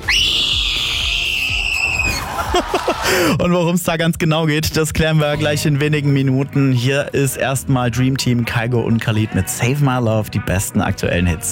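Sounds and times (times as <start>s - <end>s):
shrill human scream from a TV show: 0.0s - 3.1s
laughter: 2.1s - 3.5s
speech: 2.6s - 11.4s.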